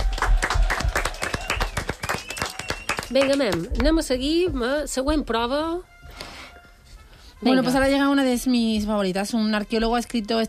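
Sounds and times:
applause from a small group: 0.0s - 4.1s
speech: 3.1s - 5.9s, 7.4s - 10.4s.

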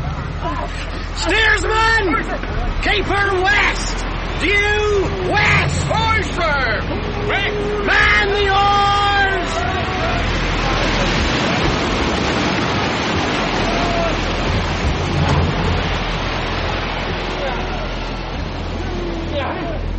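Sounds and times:
sea storm rain: 0.0s - 19.9s
sea storm wind: 0.0s - 19.9s
surging sea water: 0.0s - 19.9s
speech: 0.6s - 8.9s.

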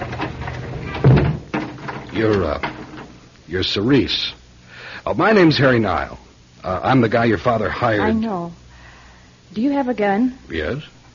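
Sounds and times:
front door being closed: 0.0s - 3.1s
speech: 2.2s - 2.7s, 3.5s - 4.4s, 5.0s - 8.6s, 9.5s - 11.0s.

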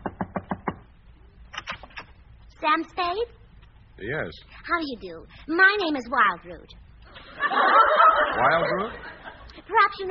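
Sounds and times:
knocking on a door: 0.0s - 0.9s
speech: 2.6s - 3.4s, 4.0s - 6.8s, 7.4s - 9.1s, 9.7s - 10.1s
laughter: 7.1s - 9.6s.

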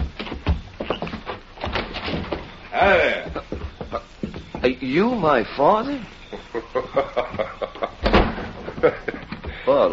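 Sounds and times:
door opening with clattering, scraping mechanical rattles: 1.6s - 2.6s, 8.0s - 8.8s
laughter: 2.8s - 4.3s, 6.3s - 9.9s
speech: 4.6s - 6.2s, 6.8s - 7.7s, 8.8s - 9.1s, 9.7s - 9.9s.

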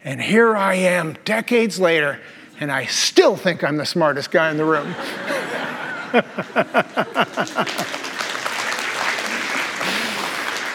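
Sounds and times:
speech: 0.0s - 5.4s, 6.1s - 8.1s
laughter: 4.4s - 8.4s
audience applause: 6.5s - 10.7s.

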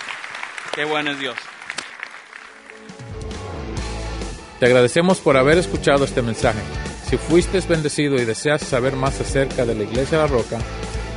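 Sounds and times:
audience applause: 0.0s - 3.4s
speech: 0.8s - 1.5s, 4.6s - 11.1s.

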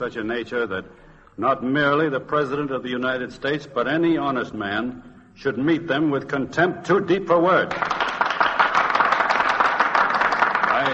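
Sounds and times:
speech: 0.0s - 8.1s
senators applauding: 7.6s - 10.9s.

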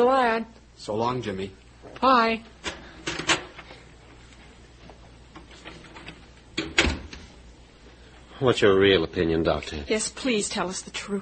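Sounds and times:
speech: 0.0s - 2.8s, 8.4s - 11.2s
faint hum: 0.0s - 11.2s
door opening and closing: 5.6s - 7.3s.

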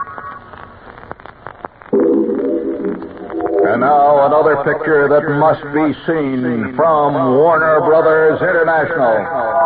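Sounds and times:
eerie wavering sustained tones with echo chamber effect: 1.9s - 4.4s
buzzy chord: 1.9s - 4.5s
speech: 3.7s - 9.5s.

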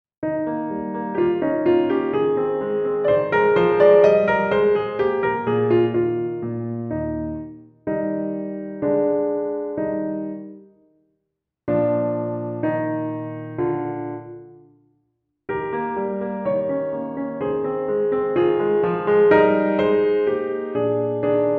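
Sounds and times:
sonatina accompaniment: 0.2s - 10.8s, 11.7s - 14.7s, 15.5s - 21.5s.

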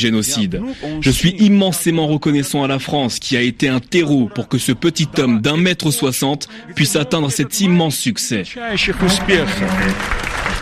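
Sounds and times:
speech: 0.0s - 10.6s
crowd applause: 8.7s - 10.6s.

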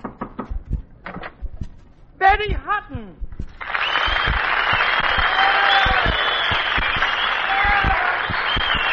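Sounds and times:
knocking on a door: 0.0s - 0.8s
heavier thuds: 0.0s - 8.8s
speech: 2.2s - 3.2s.

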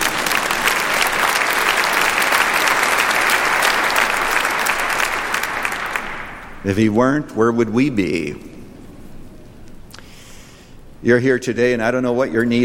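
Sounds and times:
audience applause: 0.0s - 6.7s
speech: 6.6s - 8.6s, 11.0s - 12.6s.

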